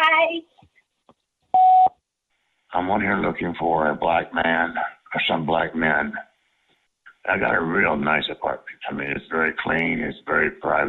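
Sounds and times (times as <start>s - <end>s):
recorded speech: 0.0s - 0.5s, 2.7s - 6.3s, 7.1s - 10.8s
answering machine beep: 1.6s - 1.9s.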